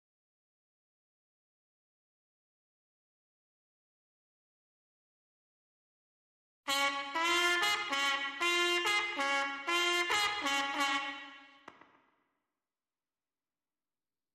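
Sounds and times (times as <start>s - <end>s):
trumpet: 6.7s - 11.8s.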